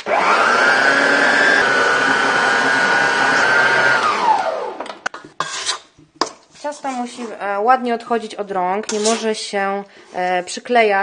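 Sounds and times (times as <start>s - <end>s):
electric mixer beating gingerbread dough with butter: 0.0s - 5.0s
speech: 7.0s - 11.0s.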